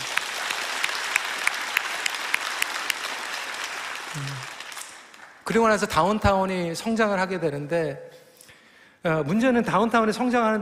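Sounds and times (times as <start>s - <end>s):
large crowd applause: 0.0s - 5.4s
speech: 4.2s - 4.5s, 5.5s - 8.2s, 9.0s - 10.6s.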